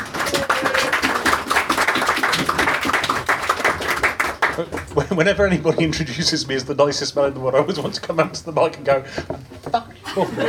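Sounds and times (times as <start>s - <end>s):
audience applause: 0.0s - 5.2s
speech: 4.6s - 10.4s
laughter: 10.0s - 10.4s.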